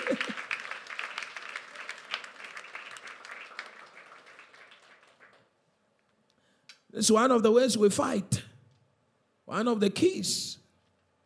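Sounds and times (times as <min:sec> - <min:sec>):
audience clapping hands: 0:00.0 - 0:05.6
speech: 0:00.1 - 0:00.4, 0:07.0 - 0:08.4, 0:09.5 - 0:10.6.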